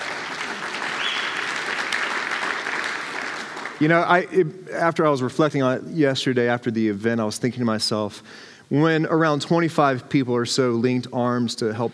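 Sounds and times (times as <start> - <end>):
audience applause: 0.0 - 4.0
speech: 3.8 - 11.9.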